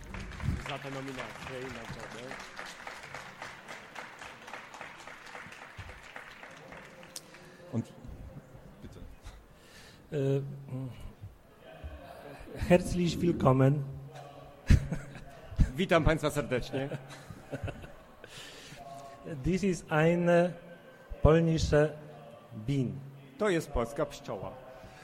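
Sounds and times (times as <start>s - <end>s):
audience welcome applause: 0.0s - 7.8s
speech: 0.7s - 2.9s, 7.7s - 8.0s, 10.1s - 11.0s, 12.7s - 14.0s, 15.8s - 17.0s, 19.4s - 20.6s, 21.2s - 22.0s, 22.6s - 24.6s
laughter: 14.1s - 15.8s, 16.7s - 18.4s.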